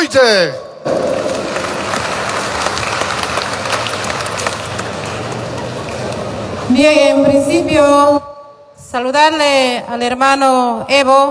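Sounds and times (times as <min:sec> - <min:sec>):
speech: 0:00.1 - 0:01.3, 0:06.8 - 0:08.3, 0:08.9 - 0:11.2
crowd applause: 0:00.9 - 0:06.6.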